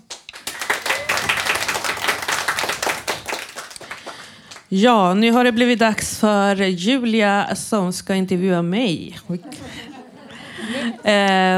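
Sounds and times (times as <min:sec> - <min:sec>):
crowd audience applause: 0:00.0 - 0:04.7
speech: 0:04.7 - 0:09.8, 0:11.0 - 0:11.5
laughter: 0:09.3 - 0:11.5.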